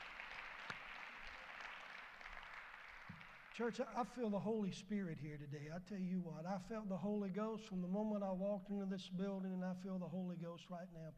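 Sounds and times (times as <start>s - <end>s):
audience hand clap: 0.0s - 4.2s
speech: 3.6s - 11.1s.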